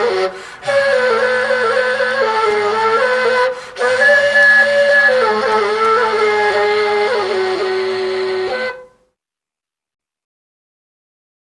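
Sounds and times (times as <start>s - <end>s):
Turkmen flute piece: 0.0s - 9.1s.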